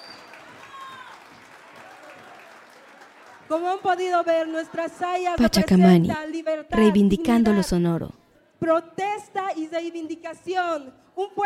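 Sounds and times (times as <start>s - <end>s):
audience applause: 0.0s - 3.8s
speech: 3.5s - 11.4s.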